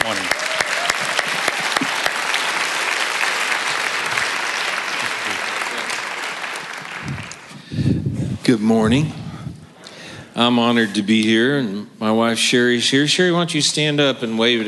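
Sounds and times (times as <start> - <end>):
audience applause: 0.0 - 7.7
speech: 8.5 - 9.2, 10.4 - 14.6.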